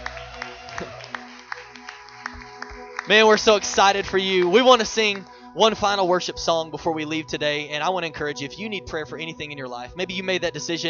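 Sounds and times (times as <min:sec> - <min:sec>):
audience applause: 0:00.0 - 0:05.3
speech: 0:03.1 - 0:10.8.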